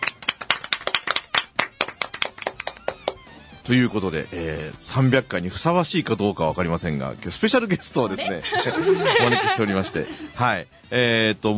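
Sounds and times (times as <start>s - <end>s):
hand clapping from a small group of people: 0.0s - 3.3s
speech: 3.7s - 11.5s
laughter: 7.7s - 10.9s.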